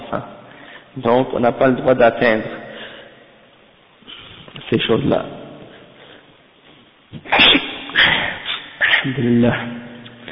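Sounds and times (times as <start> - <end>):
speech: 0.1 - 0.4, 1.0 - 2.6, 4.6 - 5.4, 9.0 - 9.9
sneeze: 7.2 - 9.2.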